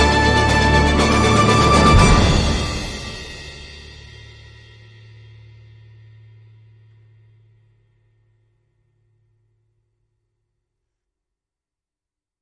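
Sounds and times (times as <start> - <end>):
uplifting pulsing orchestral music: 0.0 - 3.9.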